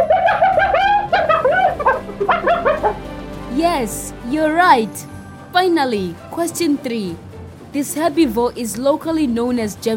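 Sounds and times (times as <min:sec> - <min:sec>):
hyena laughing call: 0:00.0 - 0:03.1
speech: 0:03.6 - 0:09.9.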